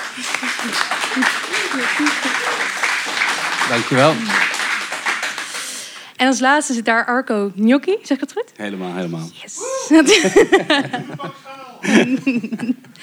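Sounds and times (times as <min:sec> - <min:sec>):
laughter: 0:00.0 - 0:04.9, 0:08.6 - 0:13.0
audience applause: 0:00.0 - 0:06.0, 0:08.7 - 0:13.0
speech: 0:03.7 - 0:04.4, 0:06.2 - 0:12.9.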